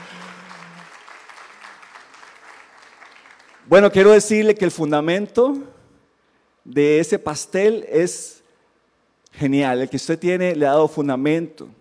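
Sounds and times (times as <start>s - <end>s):
audience applause: 0.0s - 3.7s
speech: 3.7s - 5.7s, 6.7s - 8.4s, 9.3s - 11.8s.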